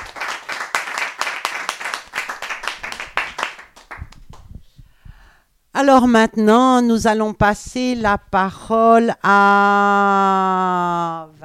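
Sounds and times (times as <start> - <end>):
audience applause: 0.0 - 4.2
speech: 5.8 - 11.3.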